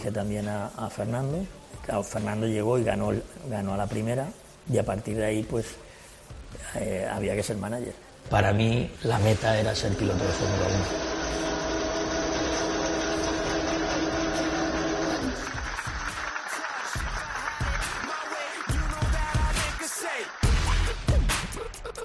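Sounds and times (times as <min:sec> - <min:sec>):
speech: 0:00.0 - 0:05.8, 0:06.5 - 0:11.4
mechanical hum: 0:09.0 - 0:15.6
racing team staff clapping: 0:10.8 - 0:21.8.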